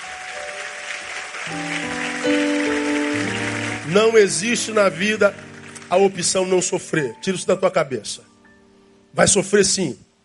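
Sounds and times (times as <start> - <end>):
audience applauding: 0.0 - 7.0
speech: 3.9 - 8.3, 9.2 - 10.1.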